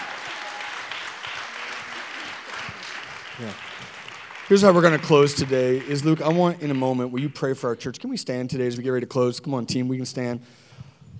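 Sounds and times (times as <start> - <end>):
audience applause: 0.0 - 7.5
speech: 3.4 - 10.6.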